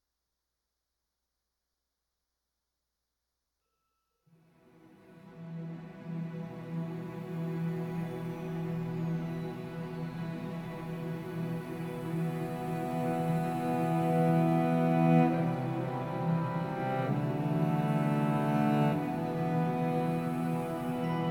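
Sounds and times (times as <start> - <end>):
plaintive solo cello: 5.4 - 21.2.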